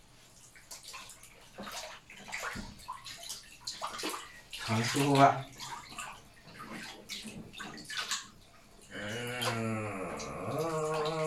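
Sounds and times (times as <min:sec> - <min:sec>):
water sloshing in a bathtub as a child is bathed: 0:00.0 - 0:11.2
speech: 0:04.7 - 0:05.6.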